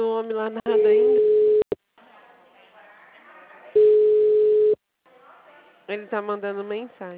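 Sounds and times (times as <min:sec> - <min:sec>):
speech: 0:00.2 - 0:01.4, 0:05.9 - 0:07.1
telephone busy tone after a dropped call: 0:01.1 - 0:01.7, 0:03.8 - 0:04.8.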